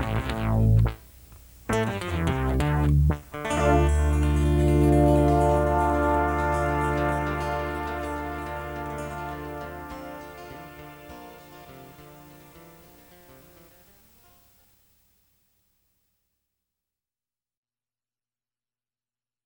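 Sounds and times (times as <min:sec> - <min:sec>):
rhythm music: 0:00.0 - 0:12.5.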